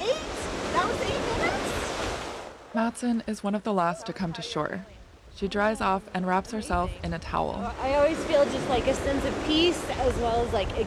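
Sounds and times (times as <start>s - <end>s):
sea water splashing as cold plungers wade out of Kachemak Bay: 0.0s - 2.9s, 3.8s - 10.8s
speech: 2.8s - 10.8s.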